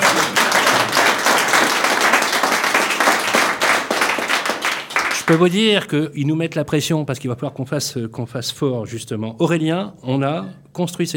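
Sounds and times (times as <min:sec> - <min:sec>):
audience applause: 0:00.0 - 0:05.4
speech: 0:05.3 - 0:11.1.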